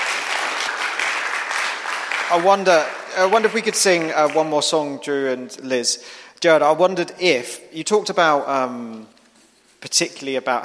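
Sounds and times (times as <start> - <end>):
audience applause at a gathering after a testimony: 0.0 - 4.8
speech: 2.3 - 9.2, 9.8 - 10.6.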